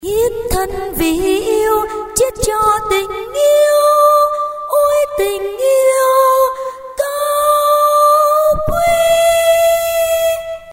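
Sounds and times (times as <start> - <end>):
soprano singing: 0.0 - 10.7.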